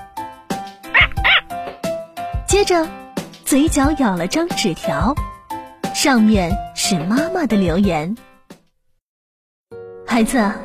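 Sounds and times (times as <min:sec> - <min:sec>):
dog barking: 0:01.0 - 0:01.5
speech: 0:02.6 - 0:05.3, 0:06.0 - 0:08.3, 0:10.1 - 0:10.6.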